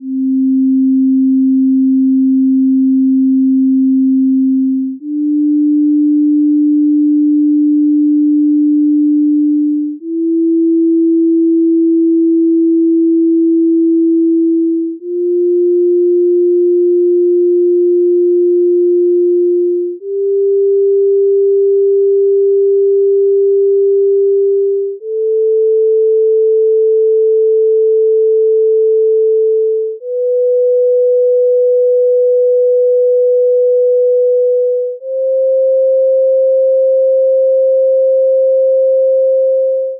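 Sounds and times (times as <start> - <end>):
musical scale played on a single sine wave: 0.0 - 39.9.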